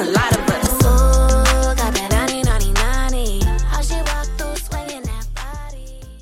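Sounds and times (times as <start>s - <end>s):
drum beat: 0.2s - 5.5s.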